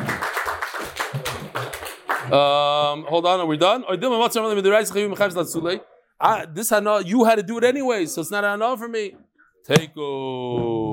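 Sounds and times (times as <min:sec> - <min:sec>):
people clapping: 0:00.0 - 0:02.6
speech: 0:02.3 - 0:10.9.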